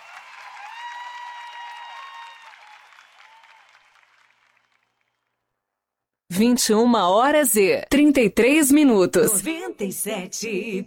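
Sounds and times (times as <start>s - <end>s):
applause: 0.0s - 5.4s
speech: 6.3s - 10.8s.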